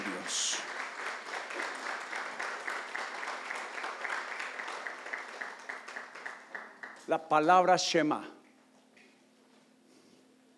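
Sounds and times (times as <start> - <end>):
audience applause: 0.0 - 7.1
speech: 7.1 - 8.4.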